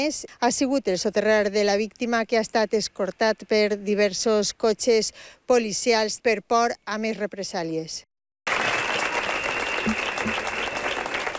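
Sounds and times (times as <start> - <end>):
speech: 0.0 - 8.1
protesters applauding at Teatre Principal de València: 8.5 - 11.3
protesters whistling at Teatre Principal de València: 8.5 - 11.3.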